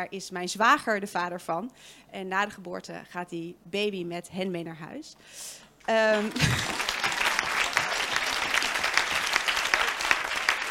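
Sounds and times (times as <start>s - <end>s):
speech: 0.0s - 7.0s
audience applause: 6.1s - 10.6s
laughter: 6.3s - 7.1s.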